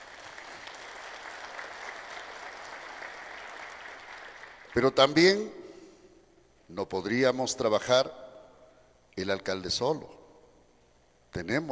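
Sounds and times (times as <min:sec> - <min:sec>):
applause: 0:00.0 - 0:05.2
speech: 0:04.7 - 0:05.6, 0:06.7 - 0:08.2, 0:09.2 - 0:10.2, 0:11.3 - 0:11.6.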